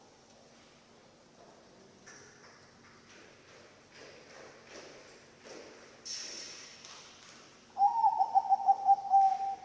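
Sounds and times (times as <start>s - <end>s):
zebra dove cooing: 7.8s - 9.6s.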